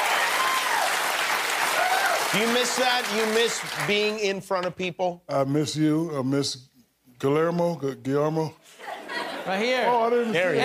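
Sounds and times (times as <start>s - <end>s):
audience applause: 0.0s - 4.1s
speech: 2.3s - 8.8s, 9.5s - 10.6s.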